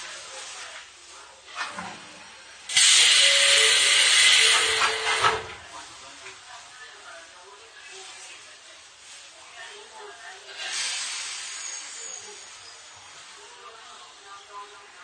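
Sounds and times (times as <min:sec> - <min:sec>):
loud bright hissing burst: 0:02.7 - 0:05.5, 0:10.6 - 0:12.8
Izu-Hakone Railway 3000 series train ride: 0:02.7 - 0:05.7.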